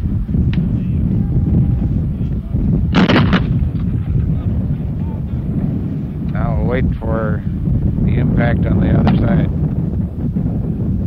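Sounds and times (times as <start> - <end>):
constant loud rumble of wind: 0.0 - 11.0
naval broadside from heavy howitzers firing: 2.9 - 4.0
speech: 6.8 - 7.5, 8.2 - 9.7.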